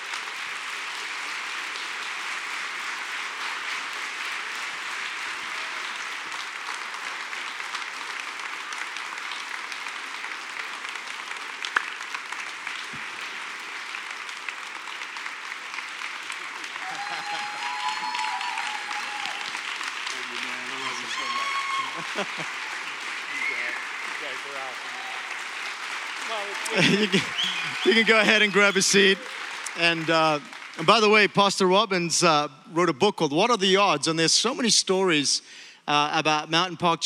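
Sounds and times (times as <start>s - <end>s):
audience applause welcoming two pastors onto a stage: 0.0s - 32.4s
laughter: 16.8s - 17.8s, 20.2s - 23.6s, 26.3s - 30.4s
speech: 26.7s - 37.0s.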